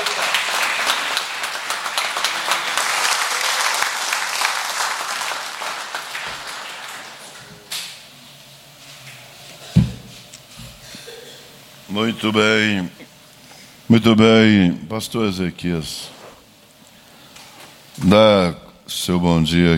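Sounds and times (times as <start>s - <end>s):
audience applause: 0.0s - 7.6s
speech: 12.0s - 13.0s, 13.9s - 16.1s, 18.0s - 19.7s.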